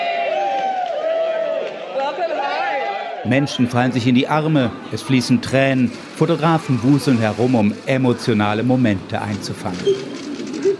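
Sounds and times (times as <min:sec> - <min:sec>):
sustained high-pitched whoop: 0:00.0 - 0:01.7
crowd cheering in airport arrivals hall: 0:00.0 - 0:07.6
speech: 0:02.1 - 0:02.6, 0:03.2 - 0:10.2.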